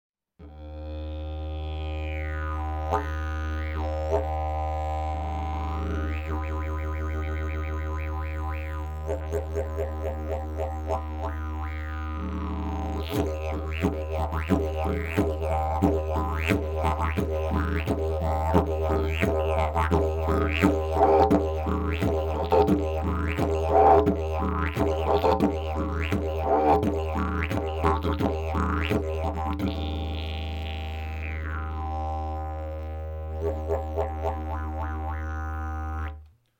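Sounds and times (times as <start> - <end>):
didgeridoo: 0.4 - 36.3.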